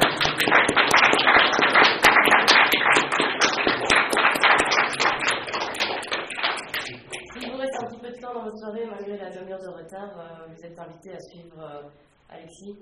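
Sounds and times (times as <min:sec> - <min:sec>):
audience applause: 0:00.0 - 0:07.8
speech: 0:09.9 - 0:12.7.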